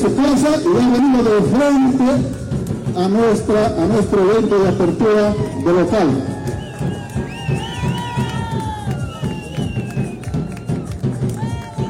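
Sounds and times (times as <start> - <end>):
speech: 0.0 - 2.4, 3.0 - 6.3
crowd clapping and cheering at event: 0.0 - 11.8
whistles: 4.2 - 5.5, 6.4 - 10.9.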